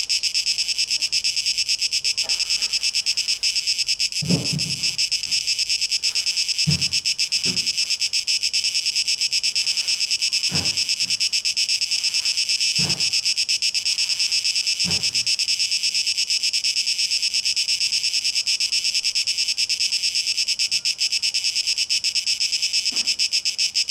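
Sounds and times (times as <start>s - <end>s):
cicadas buzzing: 0.0s - 23.8s
low thuds: 4.1s - 7.9s.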